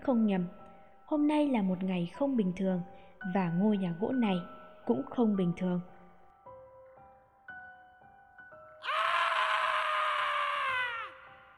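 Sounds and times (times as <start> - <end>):
speech: 0.0 - 5.9
strange scream echoing down from above: 8.8 - 11.5.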